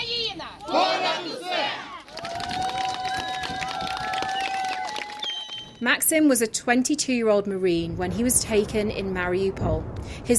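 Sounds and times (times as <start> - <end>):
villagers cheering and shouting for a returning Marine: 0.1 - 5.8
speech: 5.8 - 10.3.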